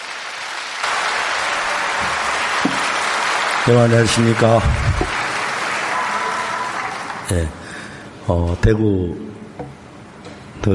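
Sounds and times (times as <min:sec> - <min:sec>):
audience applause: 0:00.0 - 0:07.5
speech: 0:03.7 - 0:05.2, 0:07.3 - 0:07.6, 0:08.3 - 0:09.4.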